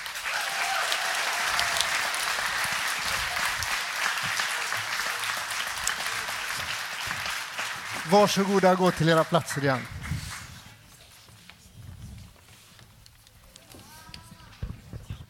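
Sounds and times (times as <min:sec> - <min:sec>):
audience applause: 0:00.0 - 0:10.7
speech: 0:08.1 - 0:10.0.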